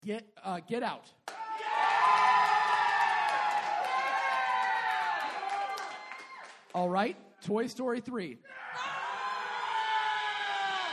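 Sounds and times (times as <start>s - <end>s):
speech: 0.0s - 1.2s, 6.8s - 8.6s
crowd cheering: 1.3s - 6.7s, 8.5s - 10.9s.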